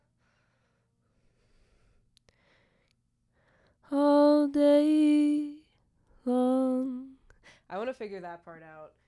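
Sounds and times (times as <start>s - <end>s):
vocal harmony: 3.9s - 7.2s.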